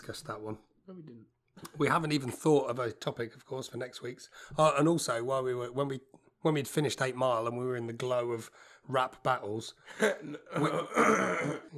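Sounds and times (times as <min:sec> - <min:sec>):
speech: 0:00.0 - 0:11.7
person coughing: 0:10.4 - 0:11.7.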